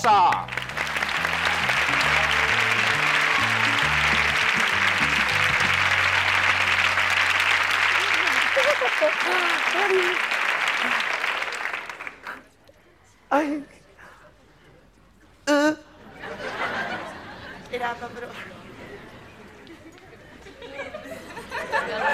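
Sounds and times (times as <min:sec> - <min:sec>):
speech: 0:00.0 - 0:00.6, 0:08.8 - 0:11.0, 0:13.3 - 0:13.7, 0:17.8 - 0:18.6
crowd applause: 0:00.0 - 0:12.5
short bass-heavy musical fanfare: 0:00.4 - 0:08.8
laughter: 0:01.2 - 0:11.3, 0:16.0 - 0:17.7, 0:18.7 - 0:22.1.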